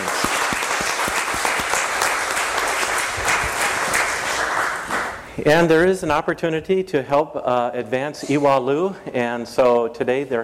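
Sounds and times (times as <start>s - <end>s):
audience applause: 0.0s - 5.2s
speech: 5.4s - 10.4s.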